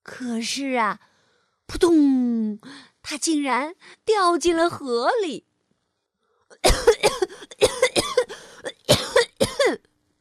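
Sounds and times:
speech: 0.2s - 1.1s, 1.7s - 5.5s
coughing after choking on water: 6.6s - 9.9s.

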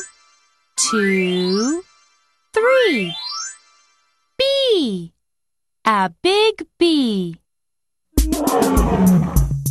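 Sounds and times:
speech: 0.9s - 1.9s, 2.7s - 3.3s, 5.9s - 7.4s, 8.3s - 9.4s
bear roar: 8.2s - 9.6s.

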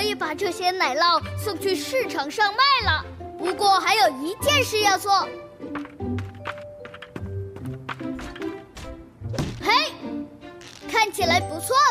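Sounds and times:
bright melodic music: 0.0s - 11.9s
speech: 0.2s - 5.8s, 11.0s - 11.9s
hooves of a horse pulling a cart carrying cheese: 5.7s - 9.0s.

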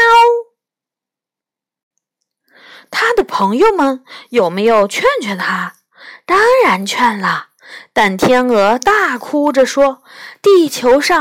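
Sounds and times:
human voice imitating a cat meow: 0.0s - 0.5s
speech: 2.8s - 11.2s.

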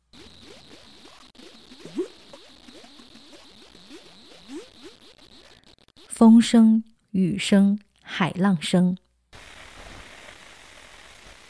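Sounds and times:
thick mud bubbling in mud pots: 0.1s - 5.6s
speech: 6.2s - 9.0s
faint constant hiss: 9.4s - 11.4s.

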